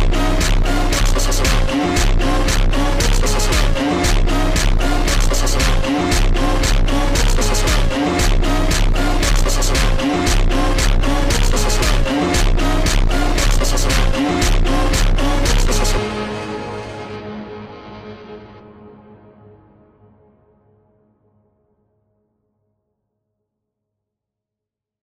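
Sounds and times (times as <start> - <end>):
slowed funk music: 0.0 - 17.0.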